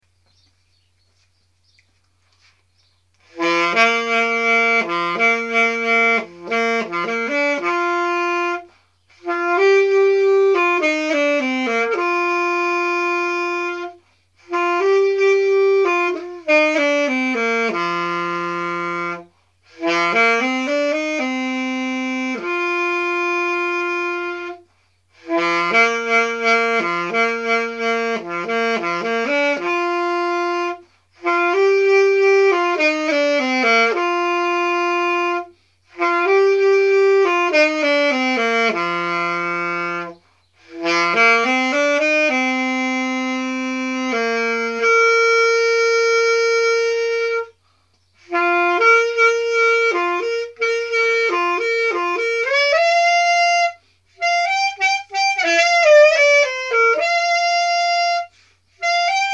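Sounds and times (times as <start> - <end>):
saxophone: 1.8 - 59.3.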